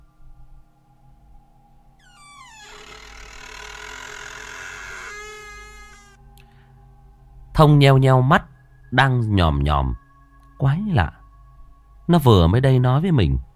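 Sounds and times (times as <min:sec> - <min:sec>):
door creaking open: 0:02.0 - 0:06.2
speech: 0:07.6 - 0:10.0, 0:10.6 - 0:11.2, 0:12.1 - 0:13.5.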